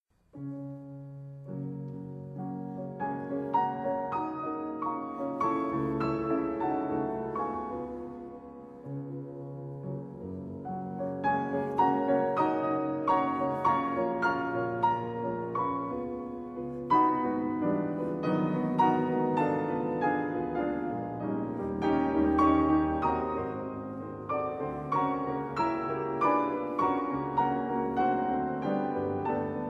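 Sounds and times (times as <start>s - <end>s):
elegy for two pianos: 0.2s - 29.6s.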